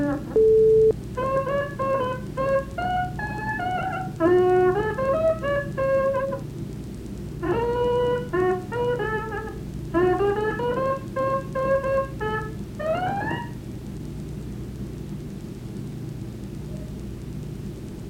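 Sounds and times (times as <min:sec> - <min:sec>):
blues music: 0:00.0 - 0:06.5, 0:07.3 - 0:13.6.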